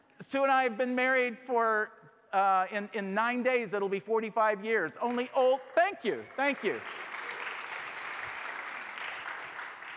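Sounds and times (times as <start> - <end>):
speech: 0.2 - 7.1
crowd applauding: 5.0 - 9.9.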